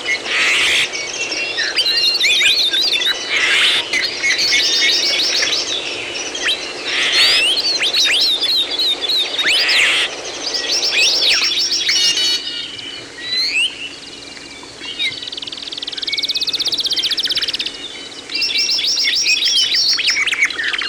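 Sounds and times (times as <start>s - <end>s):
bird chorus: 0.0s - 20.8s.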